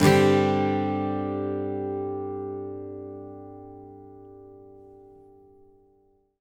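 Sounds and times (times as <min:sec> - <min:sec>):
acoustic guitar G sus chord downstroke in country style: 0:00.0 - 0:06.1.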